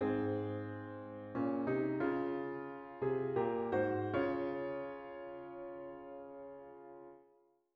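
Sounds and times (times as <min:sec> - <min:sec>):
piano fragment: 0:00.0 - 0:07.3.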